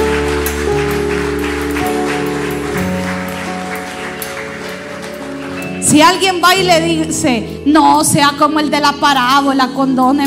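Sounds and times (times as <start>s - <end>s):
audience clapping: 0.0s - 6.2s
sustained shifting keyboard chords: 0.0s - 10.2s
speech: 5.9s - 10.2s.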